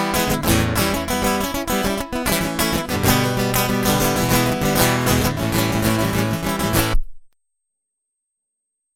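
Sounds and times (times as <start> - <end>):
guitar loop: 0.0 - 7.0.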